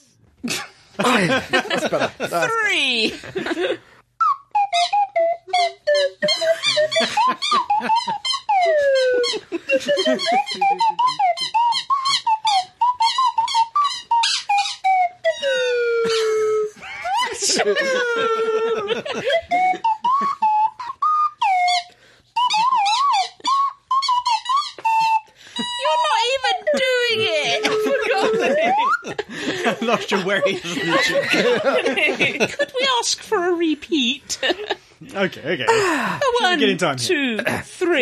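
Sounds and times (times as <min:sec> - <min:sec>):
speech: 0:00.4 - 0:03.9, 0:35.3 - 0:38.0
laughter: 0:00.5 - 0:03.9, 0:06.2 - 0:11.8, 0:15.7 - 0:20.7, 0:25.8 - 0:33.2, 0:34.2 - 0:34.9
kazoos playing a melody: 0:04.2 - 0:31.8.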